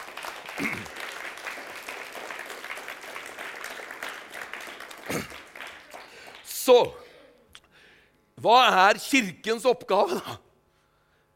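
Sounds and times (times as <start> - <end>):
crowd applause: 0.0 - 7.1
speech: 6.7 - 7.0, 8.4 - 10.4.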